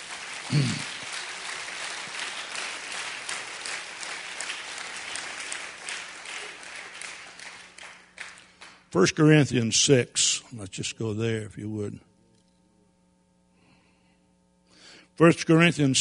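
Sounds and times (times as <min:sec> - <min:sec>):
audience at a sermon clapping: 0:00.0 - 0:08.9
speech: 0:00.5 - 0:00.9, 0:08.9 - 0:12.1, 0:15.2 - 0:15.9.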